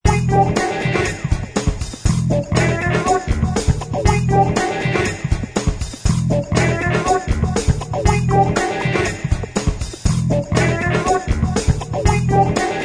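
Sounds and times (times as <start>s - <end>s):
groove music: 0.0s - 12.8s.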